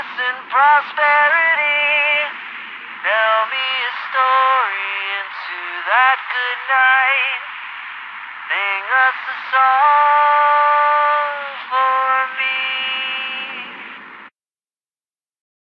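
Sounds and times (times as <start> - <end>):
person singing: 0.0 - 2.4, 3.0 - 7.6, 8.5 - 14.0.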